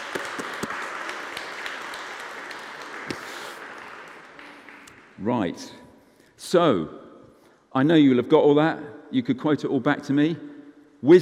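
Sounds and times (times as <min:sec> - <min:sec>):
audience applauding: 0:00.0 - 0:05.2
speech: 0:05.2 - 0:05.8, 0:06.4 - 0:07.0, 0:07.7 - 0:11.2.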